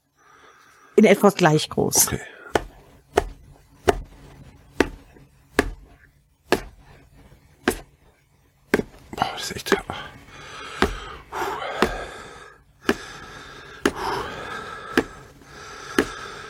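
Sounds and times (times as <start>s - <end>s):
speech: 1.0s - 2.4s
knife chopping food finely into small pieces: 2.5s - 7.0s, 7.6s - 8.0s, 8.7s - 9.1s, 10.7s - 16.3s.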